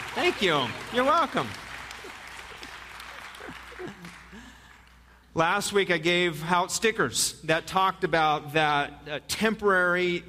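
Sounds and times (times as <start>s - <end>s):
audience applause for the presenter's assistants: 0.0s - 5.2s
speech: 0.2s - 1.6s, 5.4s - 10.2s.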